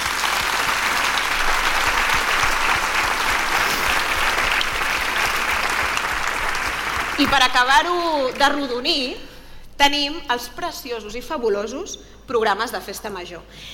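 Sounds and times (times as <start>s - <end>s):
audience applause: 0.0s - 8.6s
speech: 7.2s - 13.7s.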